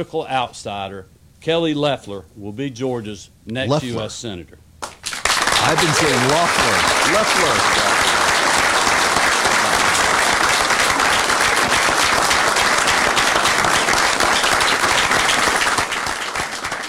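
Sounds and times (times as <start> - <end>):
speech: 0.0 - 4.7, 5.6 - 7.9
crowd applause: 5.0 - 16.8.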